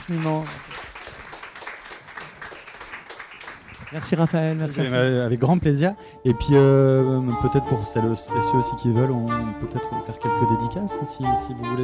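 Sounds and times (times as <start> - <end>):
speech: 0.0 - 0.7, 3.9 - 11.8
audience applause after an author's book talk: 0.0 - 5.4.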